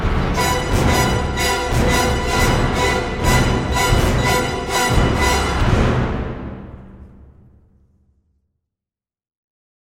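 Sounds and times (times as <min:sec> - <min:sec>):
countdown: 0:00.1 - 0:06.5.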